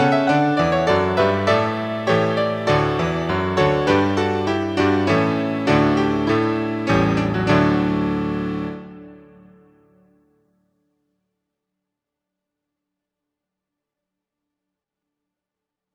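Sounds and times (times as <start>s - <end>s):
musical accompaniment: 0.0s - 10.0s.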